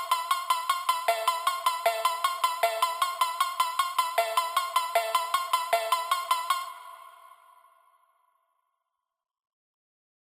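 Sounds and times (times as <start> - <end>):
Memphis phonk music: 0.0 - 7.2.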